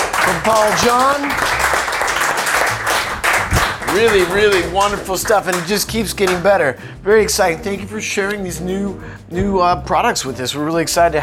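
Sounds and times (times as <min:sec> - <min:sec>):
audience applause: 0:00.0 - 0:05.7
speech: 0:00.3 - 0:01.6, 0:03.9 - 0:11.2.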